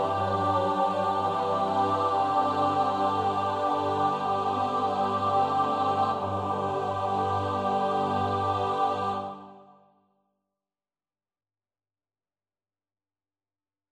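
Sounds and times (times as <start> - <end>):
SATB choir part practice: 0.0 - 9.9.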